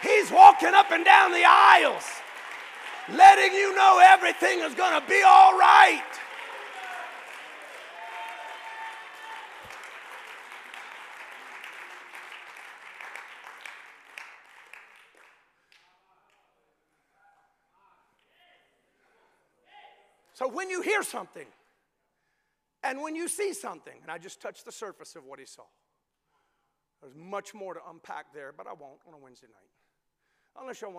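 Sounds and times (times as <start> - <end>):
crowd clapping hands in praise: 0.0 - 16.4
speech: 0.2 - 2.2, 3.1 - 6.1, 20.4 - 21.6, 22.8 - 25.8, 27.0 - 29.8, 30.6 - 30.9.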